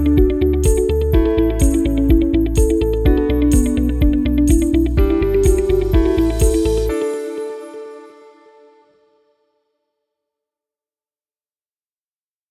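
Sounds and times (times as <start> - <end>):
happy upbeat shopping music: 0.0 - 9.2.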